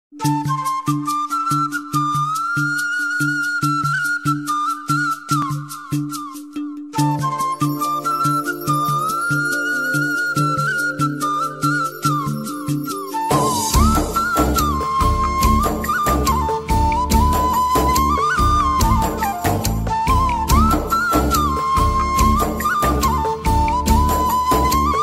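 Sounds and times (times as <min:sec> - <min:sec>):
flute music ringtone: 0:00.1 - 0:25.0.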